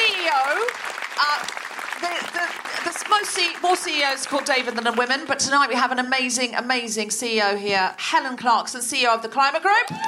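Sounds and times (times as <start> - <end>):
audience applause: 0.0 - 5.4
speech: 3.2 - 10.0
high-pitched whoops and cheers: 9.8 - 10.0.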